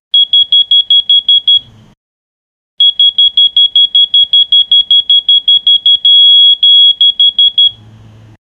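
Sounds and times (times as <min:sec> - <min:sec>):
mobile phone morning alarm: 0:00.2 - 0:01.7, 0:02.8 - 0:07.8.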